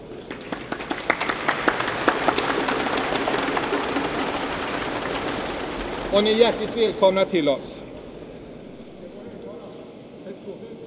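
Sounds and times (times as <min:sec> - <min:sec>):
audience applause: 0:00.0 - 0:09.2
speech: 0:06.1 - 0:07.8.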